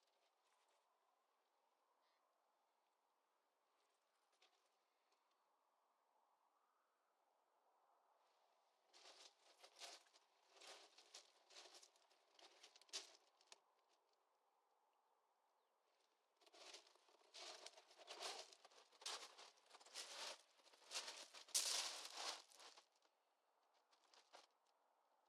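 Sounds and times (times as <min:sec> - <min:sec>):
footsteps: 0:09.0 - 0:13.2, 0:16.5 - 0:22.8.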